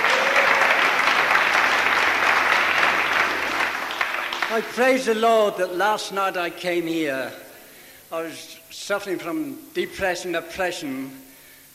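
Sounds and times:
crowd clapping: 0:00.0 - 0:05.0
speech: 0:04.5 - 0:07.4, 0:08.1 - 0:11.2.

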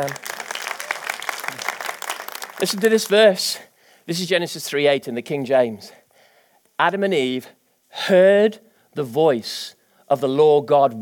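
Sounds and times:
speech: 0:00.0 - 0:00.2, 0:02.6 - 0:06.0, 0:06.8 - 0:11.0
audience clapping: 0:00.0 - 0:03.4.

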